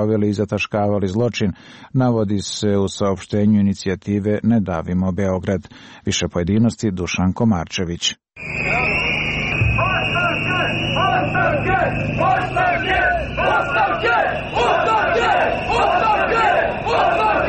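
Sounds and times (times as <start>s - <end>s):
speech: 0.0s - 8.6s
protest crowd blowing whistles in street in Belgrade: 8.4s - 17.4s.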